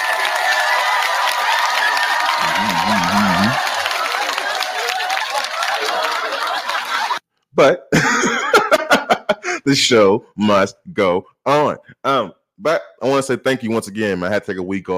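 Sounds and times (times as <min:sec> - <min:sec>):
wavering whoop: 0:00.0 - 0:06.2
crowd applauding and cheering: 0:00.0 - 0:07.2
laughter: 0:02.3 - 0:07.2, 0:07.9 - 0:09.7
speech: 0:07.6 - 0:08.3, 0:09.7 - 0:14.9.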